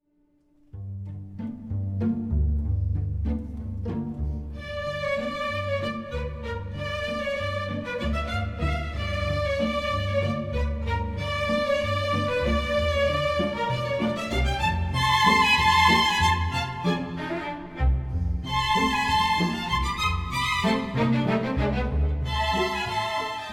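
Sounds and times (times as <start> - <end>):
string ensemble playing a serenata: 0.7 - 23.5.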